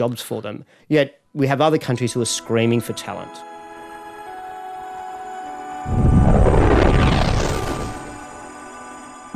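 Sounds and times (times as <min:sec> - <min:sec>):
speech: 0:00.0 - 0:03.5
steady synthesized tone: 0:05.8 - 0:08.5
rising sweeping whoosh: 0:05.8 - 0:08.6
video game explosion: 0:05.9 - 0:08.5.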